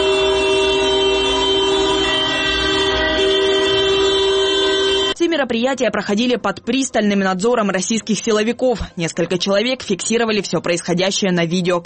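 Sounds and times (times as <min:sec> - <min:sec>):
car horns honking together in solidarity: 0:00.0 - 0:05.2
speech: 0:05.5 - 0:11.8.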